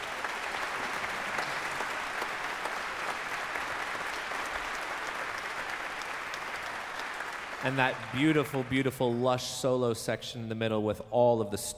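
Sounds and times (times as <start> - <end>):
large audience applause: 0.0 - 9.4
speech: 7.6 - 11.7.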